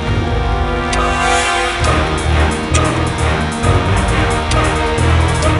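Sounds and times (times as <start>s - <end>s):
microgame timer sting: 0.2s - 5.4s.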